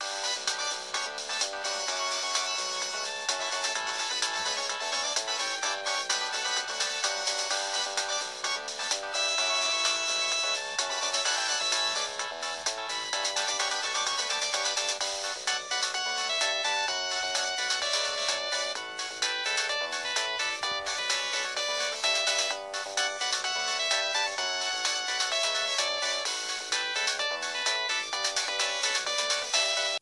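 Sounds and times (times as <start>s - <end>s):
chatshow ringtone on Samsung SGH T100: 0.0s - 30.0s.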